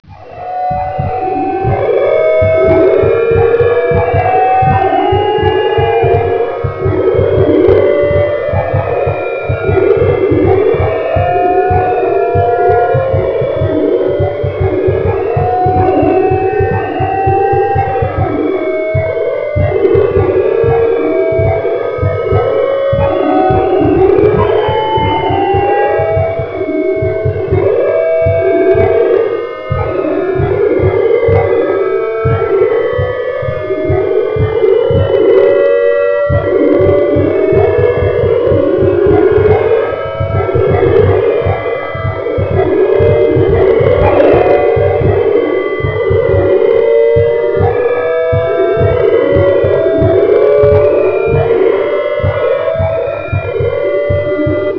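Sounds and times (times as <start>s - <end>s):
ambient music: 0.0s - 54.7s.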